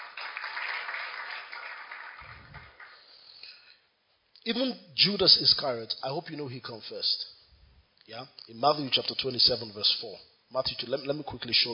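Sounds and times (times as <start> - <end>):
audience clapping: 0.0 - 3.7
speech: 4.5 - 7.3, 8.1 - 11.7.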